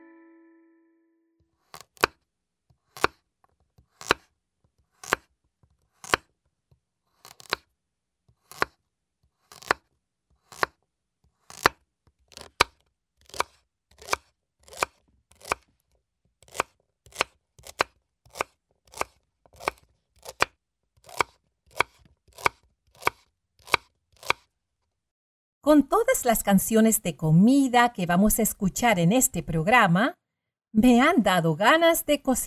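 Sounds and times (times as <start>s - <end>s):
brief tone: 0.0s - 1.4s
knife chopping vegetables on a board: 1.6s - 6.4s, 7.1s - 7.7s, 8.3s - 24.5s
speech: 25.7s - 30.2s, 30.8s - 32.4s.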